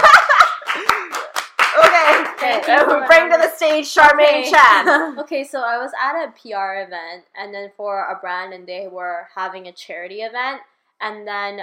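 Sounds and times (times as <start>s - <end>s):
laughter: 0.0s - 1.2s
person clapping: 0.0s - 4.4s
speech: 2.6s - 11.6s.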